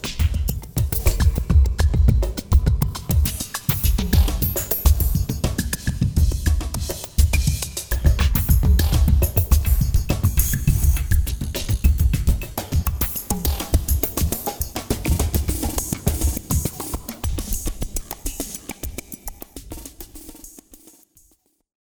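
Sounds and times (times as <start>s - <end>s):
latin dance music: 0.0s - 16.7s.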